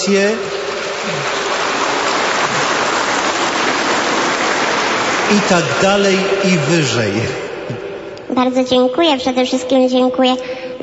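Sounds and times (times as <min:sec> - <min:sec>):
speech: 0:00.0 - 0:01.4, 0:05.3 - 0:07.4, 0:08.3 - 0:10.8
applause: 0:00.0 - 0:07.4.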